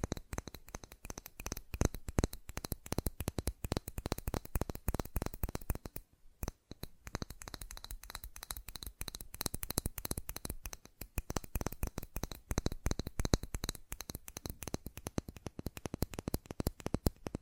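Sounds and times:
fast tapping: 0.0s - 17.3s.

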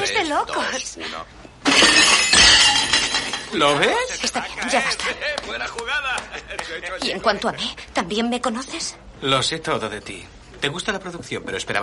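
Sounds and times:
speech: 0.3s - 2.4s, 3.5s - 11.8s
tray of dishes hitting the floor and shattering: 1.6s - 4.2s.

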